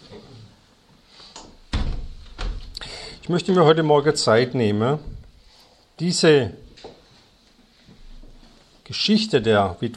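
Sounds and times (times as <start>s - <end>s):
window sash thumping closed: 1.7s - 2.7s
speech: 3.3s - 5.1s, 6.0s - 6.7s, 8.9s - 9.9s.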